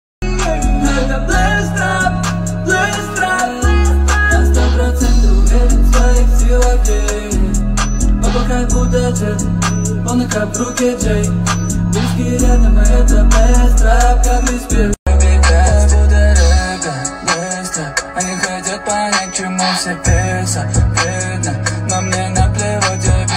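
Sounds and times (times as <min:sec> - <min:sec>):
trap beat: 0:00.2 - 0:23.3.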